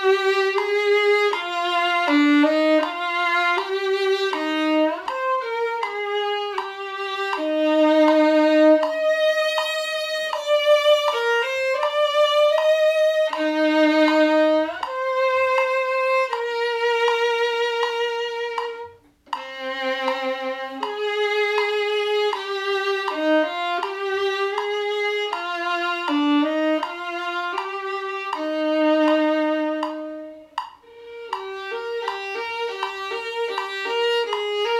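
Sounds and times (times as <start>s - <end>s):
violin: 0.0s - 34.7s.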